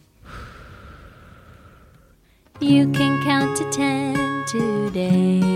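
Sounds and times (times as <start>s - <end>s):
person breathing out: 0.2s - 2.5s
speech: 2.6s - 5.4s.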